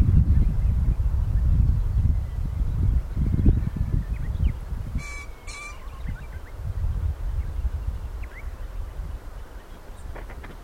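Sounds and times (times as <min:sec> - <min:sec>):
small birds chirping: 0:00.2 - 0:10.6
green pheasant crowing: 0:05.0 - 0:06.1.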